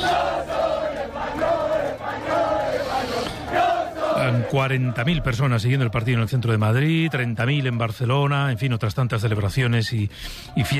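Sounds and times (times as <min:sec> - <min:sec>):
huge street crowds of fans roaring celebrating Spain winning the World Cup: 0:00.0 - 0:07.7
speech: 0:04.5 - 0:10.7.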